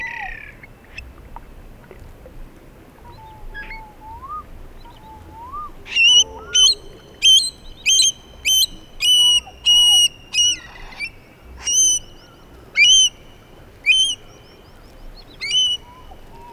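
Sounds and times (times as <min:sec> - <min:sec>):
soft low whistled bird calls in the floodplains: 0:03.0 - 0:13.2, 0:13.8 - 0:16.5.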